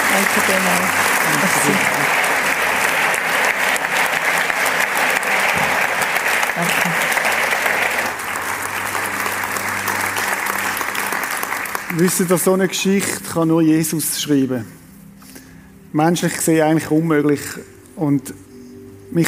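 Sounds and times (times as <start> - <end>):
audience applause: 0.0 - 13.0
speech: 0.1 - 2.2, 11.9 - 14.8, 15.9 - 18.5.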